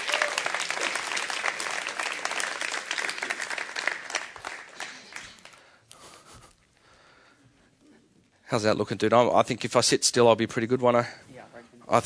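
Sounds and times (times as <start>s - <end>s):
audience applause: 0.0s - 5.7s
speech: 8.5s - 11.2s.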